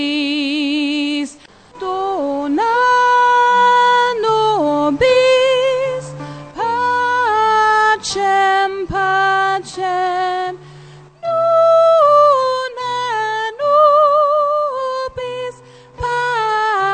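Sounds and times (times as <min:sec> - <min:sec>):
soprano voice: 0:00.0 - 0:16.9.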